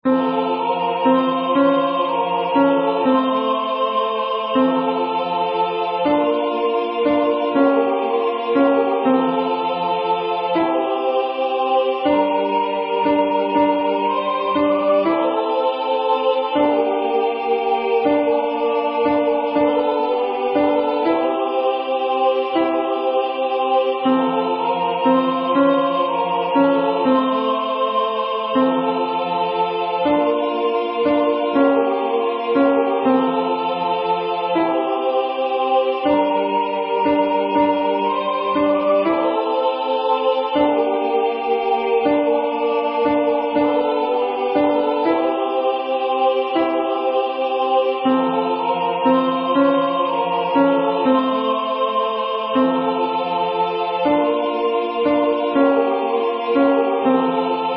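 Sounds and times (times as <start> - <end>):
alto voice singing a hymn: 0.0 - 57.7.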